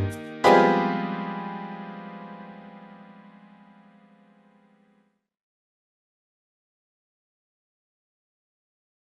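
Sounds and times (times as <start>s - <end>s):
music reprise without drums or bass: 0.0s - 3.7s.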